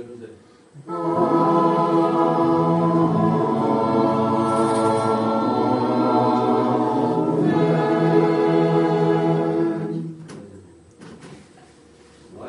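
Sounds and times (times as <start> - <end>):
solemn Amen of Orthodox divine liturgy: 0.8 - 10.4.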